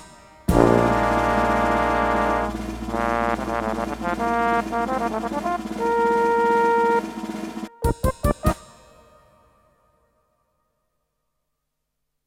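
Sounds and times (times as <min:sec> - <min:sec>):
slide trombone treble chords: 0:00.5 - 0:08.5.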